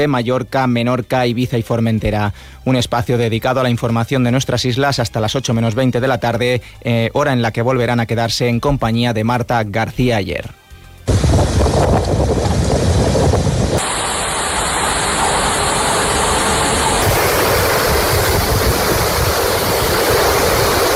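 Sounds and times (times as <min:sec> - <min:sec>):
speech: 0:00.0 - 0:12.4
storm over the islands: 0:11.1 - 0:20.9.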